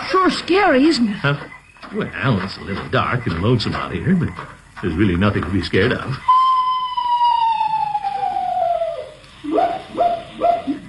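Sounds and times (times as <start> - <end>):
speech: 0.2 - 6.3
screech owl call: 6.1 - 10.8.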